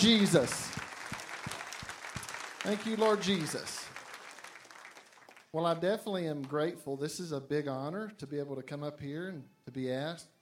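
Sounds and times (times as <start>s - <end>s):
speech: 0.0s - 0.8s, 2.6s - 3.8s, 5.5s - 10.4s
crowd clapping: 0.0s - 5.8s.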